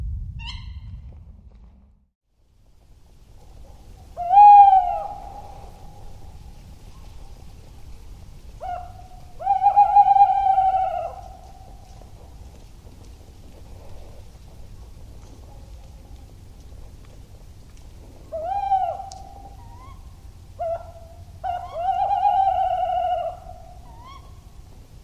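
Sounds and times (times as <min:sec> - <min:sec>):
low hum: 0:00.0 - 0:25.0
tawny owl hooting: 0:00.4 - 0:01.0, 0:03.6 - 0:07.2, 0:08.6 - 0:12.4, 0:18.2 - 0:24.5.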